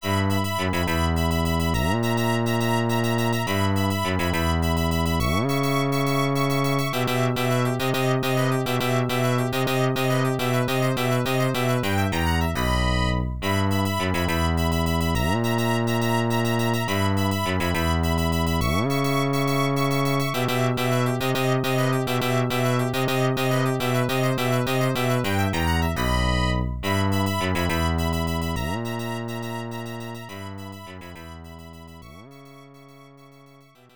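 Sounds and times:
unused background music: 0:00.0 - 0:33.9.

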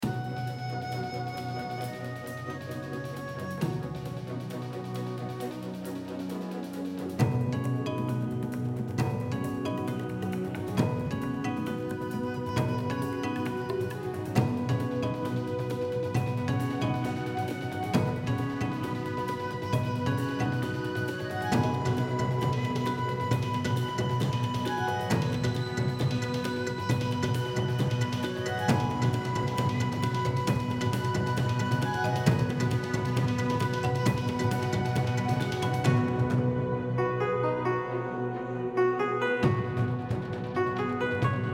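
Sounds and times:
music: 0:00.0 - 0:41.5.

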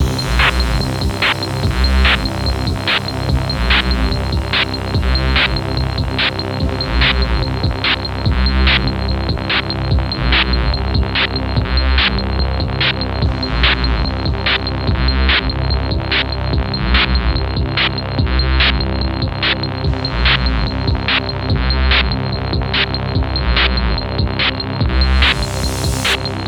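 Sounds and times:
simple music loop: 0:00.0 - 0:26.4.

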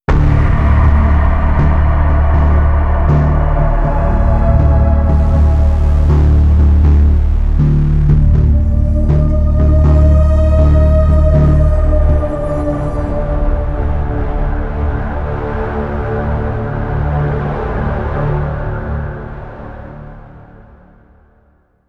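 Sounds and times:
side music stinger: 0:00.1 - 0:19.8.

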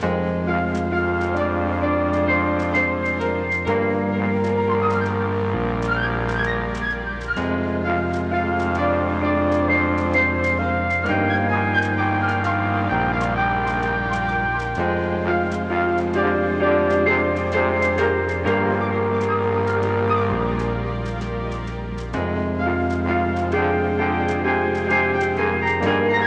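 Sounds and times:
music loop at 130 bpm: 0:00.0 - 0:26.2.

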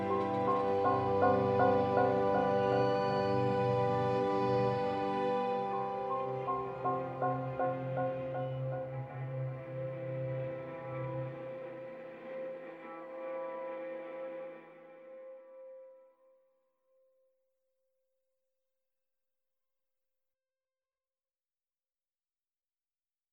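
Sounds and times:
exploration string music: 0:00.0 - 0:15.5.

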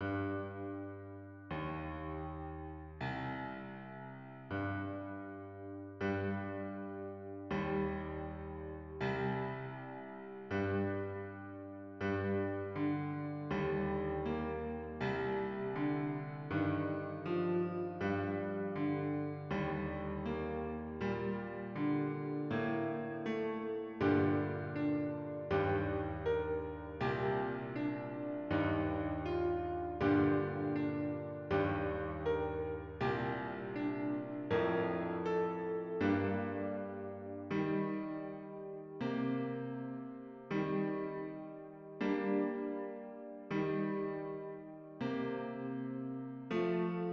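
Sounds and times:
slow piano cutscene music: 0:00.0 - 0:47.1.

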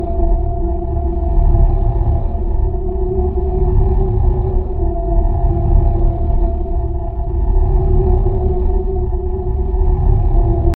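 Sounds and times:
pulsating archway and statue loop: 0:00.0 - 0:10.7.

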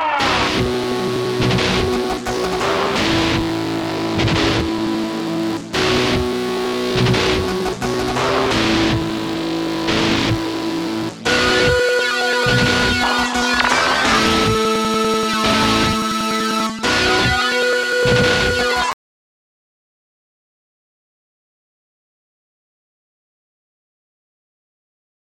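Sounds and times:
ambient music loop: 0:00.2 - 0:18.9.

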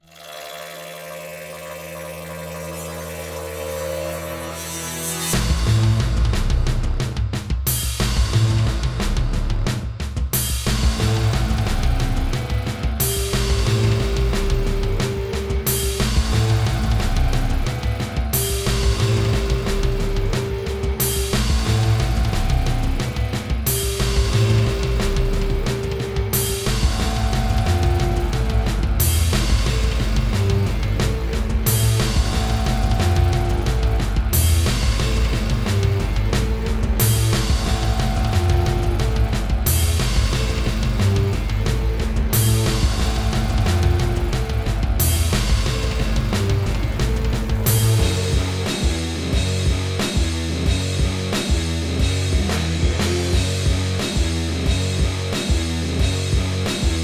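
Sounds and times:
boss battle game music: 0:04.2 - 0:57.0.

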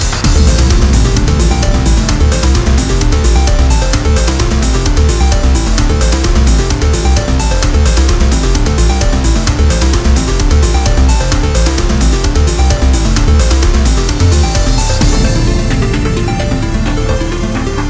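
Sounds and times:
stage background music: 0:00.2 - 0:17.8.

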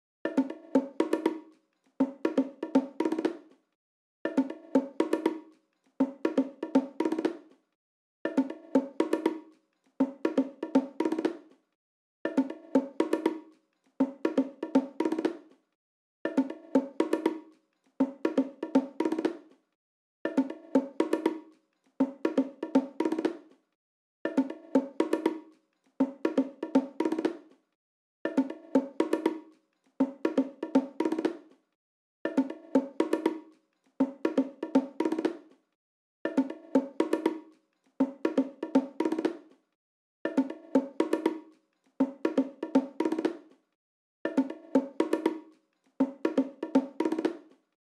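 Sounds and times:
bongos: 0:00.2 - 0:03.5, 0:04.2 - 0:07.5, 0:08.2 - 0:11.5, 0:12.2 - 0:15.5, 0:16.2 - 0:19.5, 0:20.2 - 0:23.5, 0:24.2 - 0:27.5, 0:28.2 - 0:31.5, 0:32.2 - 0:35.5, 0:36.2 - 0:39.5, 0:40.2 - 0:43.5, 0:44.2 - 0:47.6.

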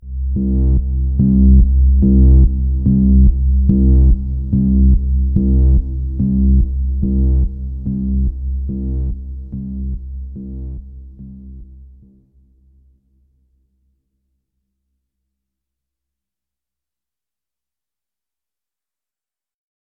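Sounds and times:
exploration drone pulse: 0:00.0 - 0:12.4.

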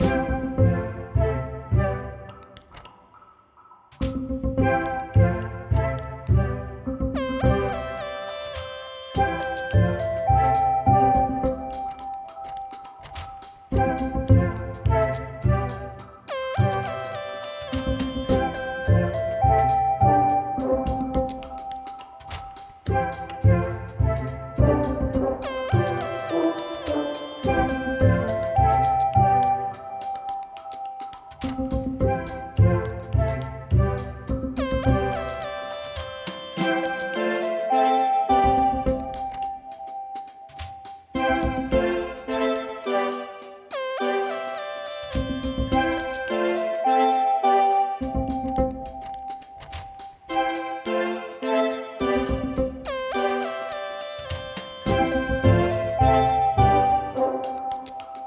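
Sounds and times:
music loop: 0:00.0 - 0:58.2.

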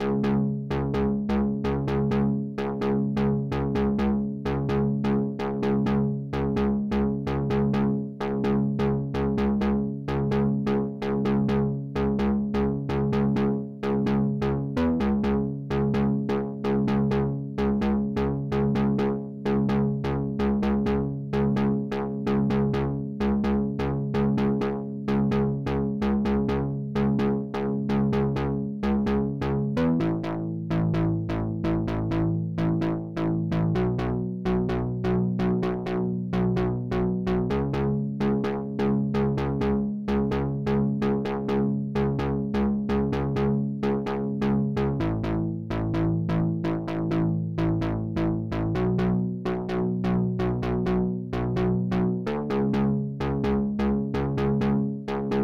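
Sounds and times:
chords: 0:00.0 - 0:55.4.

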